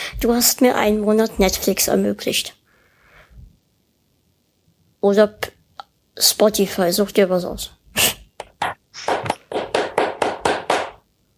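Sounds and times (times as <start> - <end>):
speech: 0.2 - 2.6, 5.0 - 5.6, 6.2 - 8.2
person clapping hands: 8.4 - 11.0.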